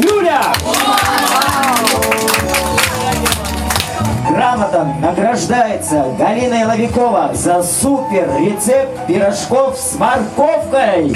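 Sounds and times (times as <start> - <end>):
crowd clapping at an award ceremony: 0.0 - 4.3
people talking and calling out: 0.0 - 11.1
speech: 4.8 - 11.1.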